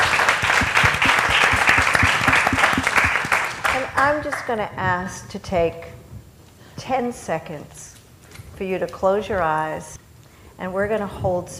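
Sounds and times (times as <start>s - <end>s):
room full of people applauding: 0.0s - 4.5s
speech: 4.0s - 6.0s, 6.8s - 7.9s, 8.6s - 10.0s, 10.6s - 11.5s.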